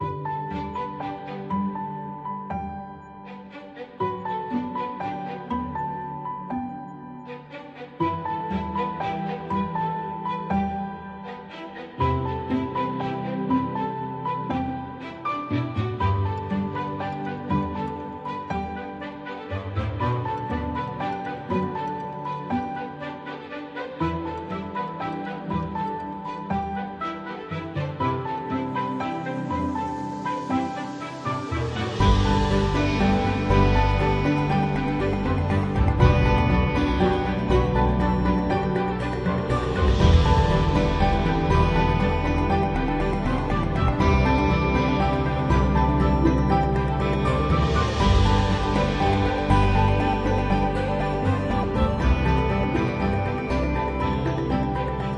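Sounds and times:
ambient music: 0:00.0 - 0:55.1.

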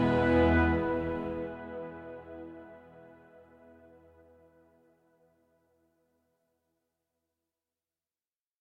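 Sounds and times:
ambient music: 0:00.0 - 0:04.9.

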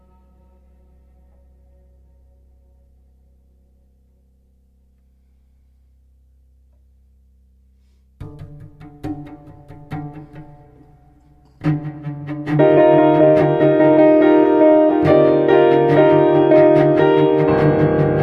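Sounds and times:
piano improvisation: 0:00.0 - 0:04.6, 0:08.2 - 0:18.2
cello improvisation: 0:08.2 - 0:18.2.

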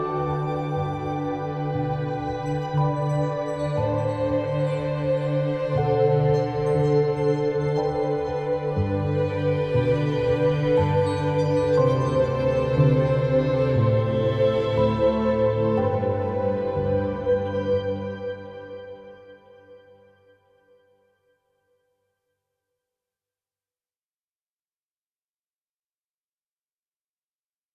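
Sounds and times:
clean ambient music: 0:00.0 - 0:21.2.

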